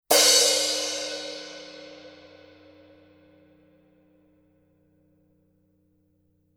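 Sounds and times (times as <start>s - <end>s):
Paiste Color Sound 900 Black crash cymbal: 0.1s - 3.4s.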